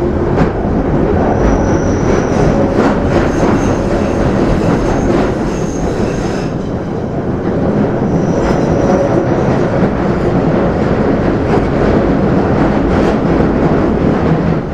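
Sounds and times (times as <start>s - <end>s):
flanged train sound: 0.0s - 14.7s.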